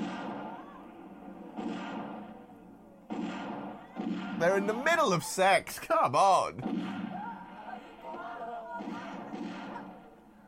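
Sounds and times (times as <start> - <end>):
pistol gunshots from the film Zardoz: 0.0 - 4.8, 6.6 - 7.9, 8.8 - 10.2
speech: 4.4 - 7.0.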